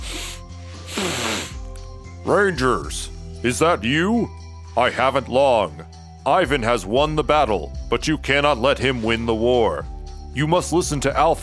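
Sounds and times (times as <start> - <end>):
exhausted heavy sniffing: 0.0 - 1.7
speech: 2.3 - 11.4.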